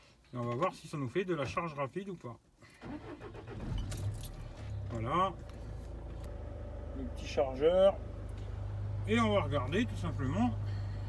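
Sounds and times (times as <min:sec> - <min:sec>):
speech: 0:00.3 - 0:03.8, 0:04.9 - 0:05.6, 0:07.0 - 0:08.1, 0:09.0 - 0:10.7
car engine started: 0:02.8 - 0:11.0
keys jangling: 0:03.8 - 0:04.5.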